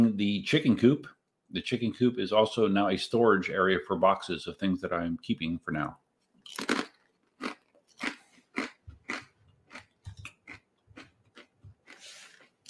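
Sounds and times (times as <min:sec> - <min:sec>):
speech: 0:00.0 - 0:06.8
eating pretzel chips: 0:06.4 - 0:12.6.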